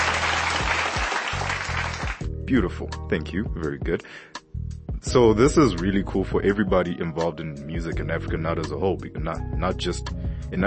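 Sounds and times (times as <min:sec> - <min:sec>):
crowd applauding: 0:00.0 - 0:02.3
speech: 0:02.5 - 0:10.6.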